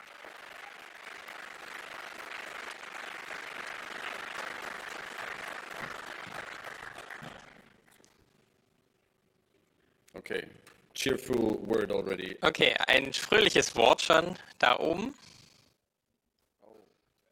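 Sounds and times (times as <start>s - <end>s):
audience applause: 0.0s - 7.9s
speech: 10.3s - 15.3s.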